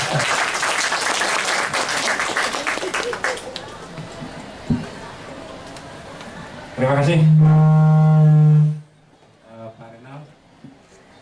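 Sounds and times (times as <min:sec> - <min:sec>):
audience applause: 0:00.0 - 0:03.7
speech: 0:06.9 - 0:07.8.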